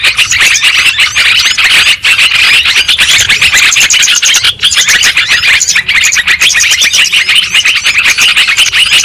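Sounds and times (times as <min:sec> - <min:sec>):
lovebirds chattering with shrill chirps: 0:00.0 - 0:09.0.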